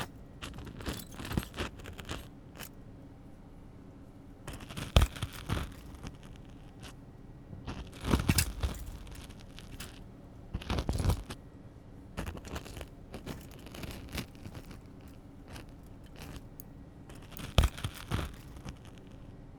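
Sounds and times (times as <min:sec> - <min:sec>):
ear cleaning in the left ear with tweezers, spoon and spiral tools: 0:00.0 - 0:02.8, 0:04.5 - 0:07.0, 0:07.6 - 0:10.0, 0:10.6 - 0:11.4, 0:12.2 - 0:19.2.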